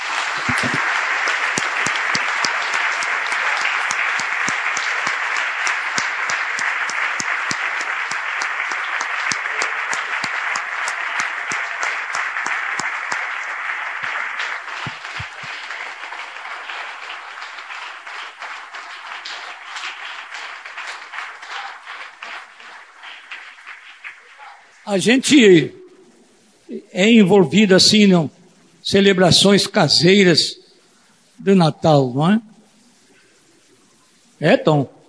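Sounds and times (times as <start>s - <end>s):
applause: 0.0s - 25.3s
speech: 24.9s - 25.8s, 27.0s - 30.6s, 31.4s - 32.5s, 34.4s - 35.0s.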